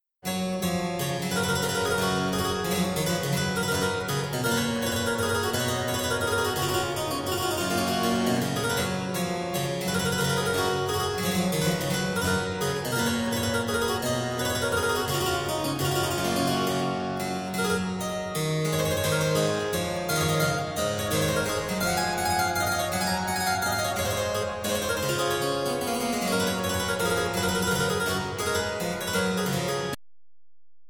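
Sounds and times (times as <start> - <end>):
harpsichord minuet: 0.3 - 30.0.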